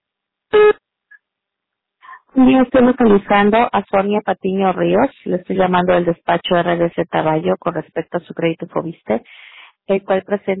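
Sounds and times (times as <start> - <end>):
voicemail beep: 0.6 - 0.8
speech: 2.3 - 10.5.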